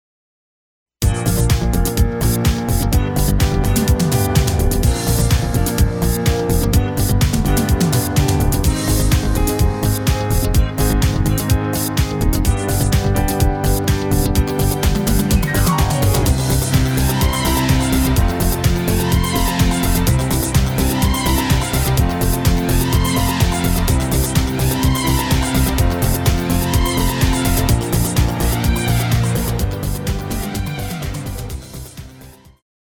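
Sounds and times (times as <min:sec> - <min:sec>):
square dance music: 0:01.0 - 0:32.1.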